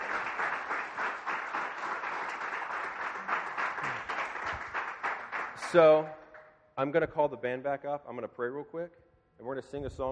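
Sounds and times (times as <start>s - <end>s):
audience applause and clapping: 0.0s - 6.0s
speech: 5.7s - 6.2s, 6.8s - 10.1s.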